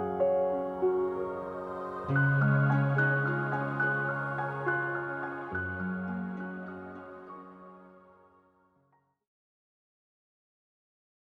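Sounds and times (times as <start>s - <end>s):
meditation music: 0.0s - 8.6s.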